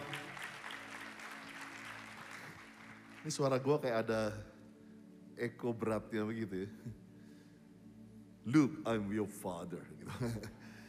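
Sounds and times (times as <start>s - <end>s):
audience applause: 0.0s - 3.6s
speech: 3.2s - 4.5s, 5.4s - 7.0s, 8.4s - 10.7s.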